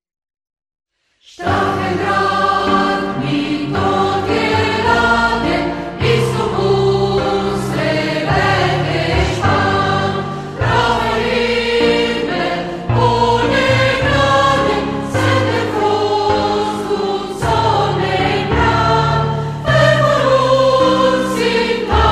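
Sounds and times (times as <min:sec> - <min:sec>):
song: 0:01.4 - 0:22.1.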